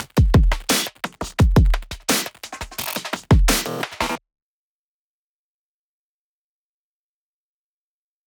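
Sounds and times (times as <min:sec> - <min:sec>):
drums: 0:00.0 - 0:04.2
percussion: 0:00.0 - 0:04.2.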